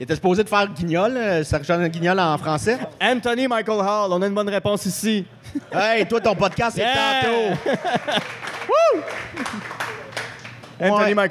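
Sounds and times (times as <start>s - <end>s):
speech: 0.0s - 9.8s, 10.8s - 11.3s
laughter: 5.4s - 10.2s
applause: 6.5s - 11.3s.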